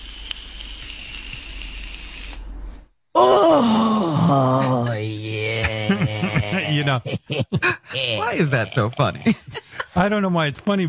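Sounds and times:
drawing on a vape pen: 0.0 - 2.4
person groaning exhale: 3.2 - 6.8
laughter: 4.1 - 10.2
speech: 6.7 - 10.8.

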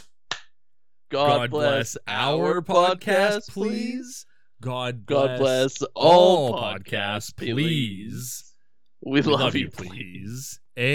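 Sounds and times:
single hand clap: 0.0 - 0.5
speech: 1.1 - 10.9.

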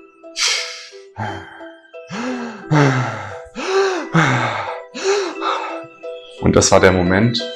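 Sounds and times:
person imitating desperate gasping breaths: 0.4 - 5.9
speech: 1.2 - 1.6, 6.5 - 7.5.

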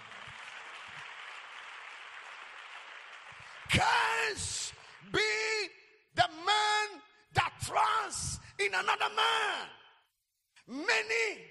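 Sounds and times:
audience clapping hands: 0.0 - 5.4
speech: 3.7 - 5.8, 7.7 - 9.8, 10.7 - 11.4.

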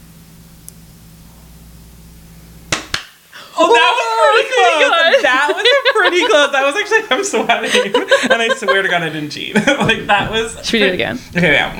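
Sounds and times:
low steady hum: 0.0 - 11.7
sharp hand claps: 2.7 - 3.2
laughter: 3.4 - 11.7
speech: 4.8 - 11.7.

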